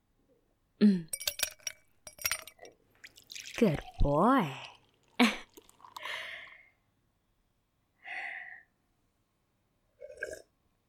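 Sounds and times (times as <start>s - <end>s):
speech: 0.8s - 1.2s, 3.6s - 4.7s
glass clinking against glass: 1.1s - 2.8s
drink pouring: 1.2s - 6.5s.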